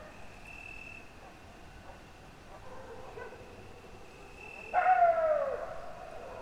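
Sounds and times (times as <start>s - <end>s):
coyote wailing calls in a pine forest at midnight: 4.7s - 5.6s.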